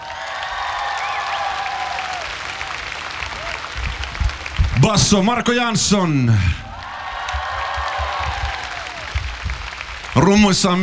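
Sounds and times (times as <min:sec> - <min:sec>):
audience applause: 0:00.0 - 0:10.8
crowd cheering: 0:00.0 - 0:10.8
whistles: 0:01.0 - 0:01.6
speech: 0:04.8 - 0:06.6, 0:10.2 - 0:10.8.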